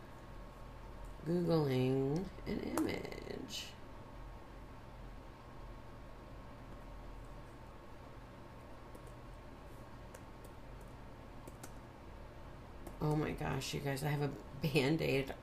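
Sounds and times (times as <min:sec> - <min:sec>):
speech: 0:01.2 - 0:03.8, 0:13.0 - 0:15.4
typing on a computer keyboard: 0:10.1 - 0:11.8.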